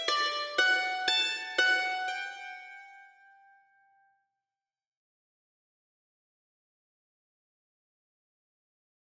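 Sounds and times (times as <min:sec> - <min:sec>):
mandolin arpeggios: 0:00.0 - 0:03.3.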